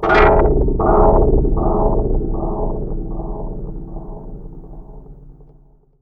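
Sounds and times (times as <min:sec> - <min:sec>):
contact mic on wire and tin through Moog low-pass filter and delay: 0:00.0 - 0:05.5.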